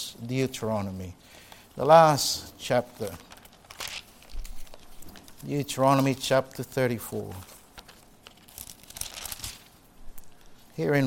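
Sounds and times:
speech: 0.0s - 3.3s, 5.4s - 7.5s, 10.8s - 11.0s
Bible pages turning: 2.7s - 10.6s.

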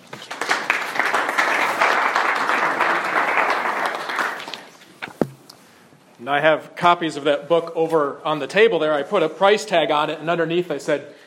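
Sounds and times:
audience round of applause: 0.0s - 4.7s
speech: 6.2s - 11.2s.

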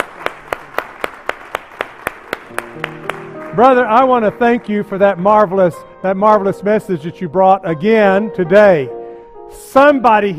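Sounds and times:
audience clapping hands: 0.0s - 5.2s
speech: 3.6s - 10.3s.

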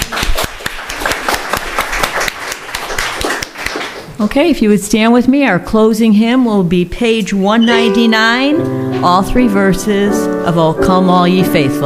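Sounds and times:
audience clapping: 0.0s - 4.1s
speech: 4.2s - 11.8s.

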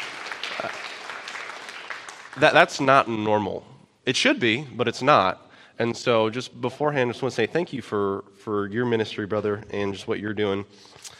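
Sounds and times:
people clapping: 0.0s - 3.3s
speech: 0.6s - 0.9s, 2.4s - 11.1s.

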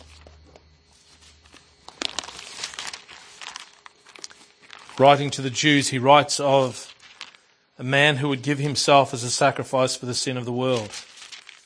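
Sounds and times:
Bible pages being turned: 0.0s - 7.5s, 10.3s - 11.6s
speech: 5.0s - 6.9s, 7.8s - 11.1s.

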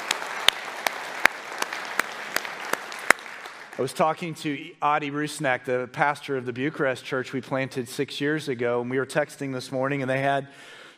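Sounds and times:
audience applause: 0.0s - 4.1s
speech: 3.8s - 10.8s.

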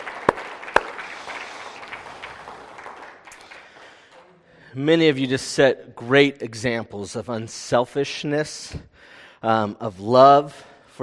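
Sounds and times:
audience applause for mothers: 0.0s - 4.4s
speech: 4.7s - 11.0s.

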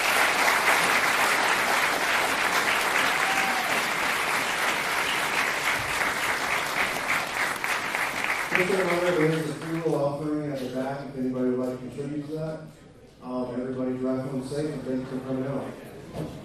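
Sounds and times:
audience round of applause: 0.0s - 9.9s
speech: 8.6s - 16.4s.

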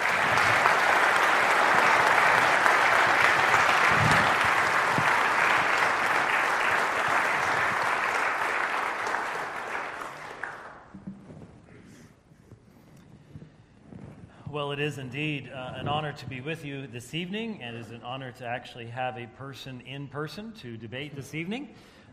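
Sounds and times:
audience applause: 0.0s - 10.9s
speech: 14.8s - 22.0s.

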